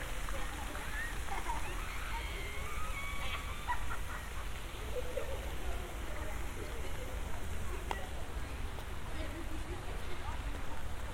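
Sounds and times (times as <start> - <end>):
faint voices: 0.0 - 11.1
low rumble and hiss in Central Park: 0.0 - 11.1
laughter: 0.5 - 7.6.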